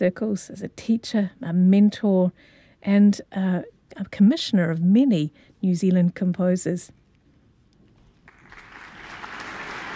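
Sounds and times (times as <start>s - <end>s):
speech: 0.0s - 7.0s
audience applause for soprano and conductor: 8.3s - 9.9s.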